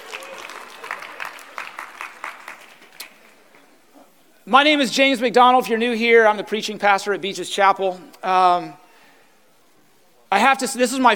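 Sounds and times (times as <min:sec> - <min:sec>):
audience applause for the band: 0:00.0 - 0:03.8
speech: 0:04.5 - 0:08.8, 0:10.3 - 0:11.1.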